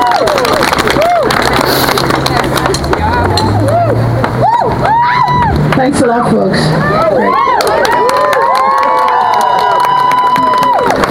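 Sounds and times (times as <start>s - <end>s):
audience applause: 0.0s - 5.8s, 6.8s - 11.0s
speech: 5.8s - 7.6s.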